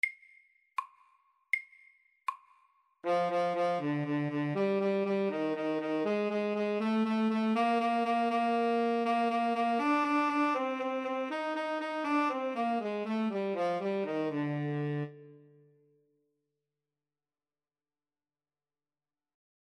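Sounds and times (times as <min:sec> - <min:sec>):
etude: 0:03.0 - 0:15.6.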